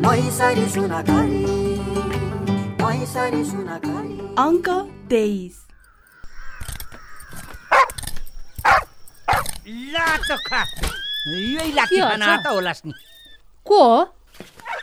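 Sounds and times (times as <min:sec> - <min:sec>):
speech: 0:00.1 - 0:01.6, 0:02.9 - 0:05.6, 0:10.1 - 0:13.1, 0:13.7 - 0:14.5
dog barking: 0:06.3 - 0:13.5.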